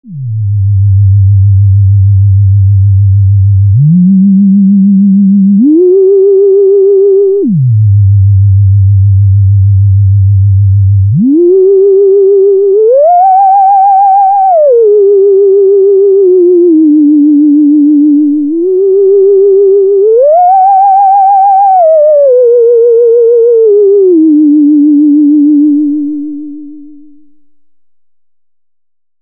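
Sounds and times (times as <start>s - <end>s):
SH01a filter self-oscillation with keyboard tracking: 0.0s - 27.4s.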